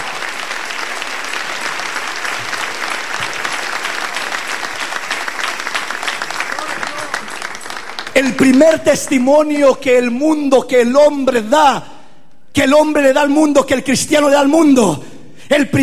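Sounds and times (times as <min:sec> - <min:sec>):
audience applauding: 0:00.0 - 0:09.4
speech: 0:08.2 - 0:11.9, 0:12.6 - 0:15.8.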